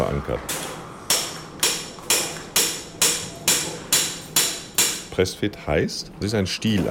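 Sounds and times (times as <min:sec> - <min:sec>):
speech: 0:00.0 - 0:00.7, 0:05.2 - 0:06.8
hammering hip socket implant into pelvis: 0:00.5 - 0:05.1.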